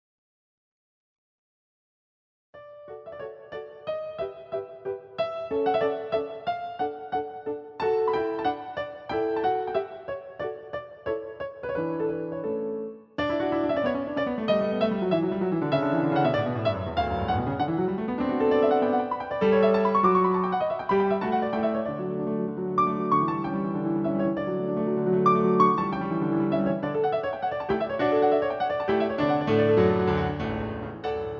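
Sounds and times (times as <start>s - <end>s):
piano sonata: 2.6s - 31.3s.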